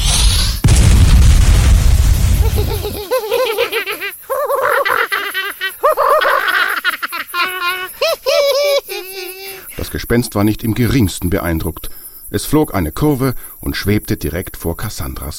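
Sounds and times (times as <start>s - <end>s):
fireball explosion effect: 0.0s - 3.1s
high bubbly laughter-like squeals and giggles: 2.4s - 10.2s
speech: 10.1s - 15.3s.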